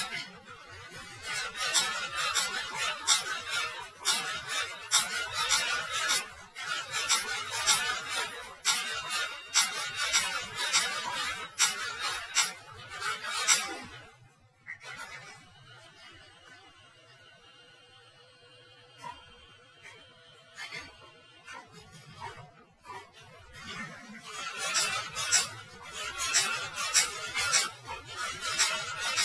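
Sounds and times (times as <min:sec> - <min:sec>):
typewriter: 0:01.3 - 0:13.8, 0:24.3 - 0:29.2.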